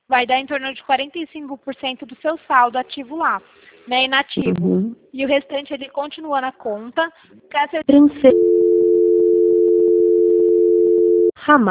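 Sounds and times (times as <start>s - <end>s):
speech: 0.1s - 8.7s, 11.4s - 11.6s
single-pitched telephone tone on a call: 8.2s - 11.4s.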